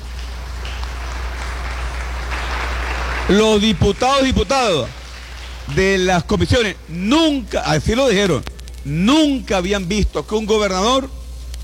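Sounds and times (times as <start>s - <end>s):
applause: 0.0s - 6.8s
speech: 3.3s - 5.0s, 5.7s - 11.2s.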